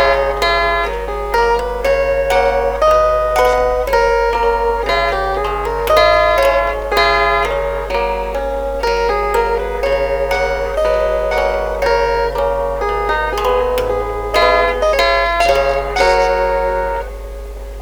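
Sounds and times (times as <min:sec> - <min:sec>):
chordophone stringed instrument: 0:00.0 - 0:17.7.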